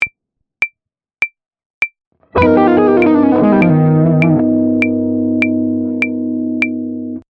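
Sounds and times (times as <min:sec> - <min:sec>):
musical lick: 0:02.4 - 0:07.2.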